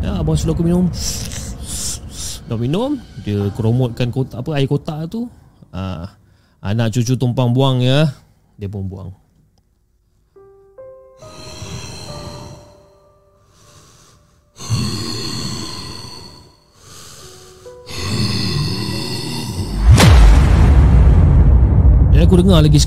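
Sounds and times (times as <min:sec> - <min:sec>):
deep rumble: 0:00.0 - 0:04.8, 0:19.6 - 0:22.8
speech: 0:00.3 - 0:01.9, 0:02.5 - 0:09.2, 0:22.3 - 0:22.8
creature snorting: 0:14.6 - 0:16.5, 0:17.9 - 0:19.8
loud thud: 0:19.8 - 0:22.8.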